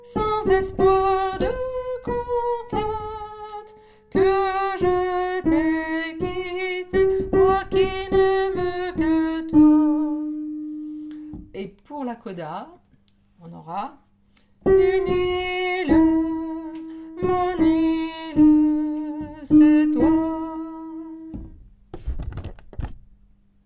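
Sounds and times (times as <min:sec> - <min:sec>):
soprano singing: 0:00.0 - 0:10.7, 0:14.6 - 0:21.6.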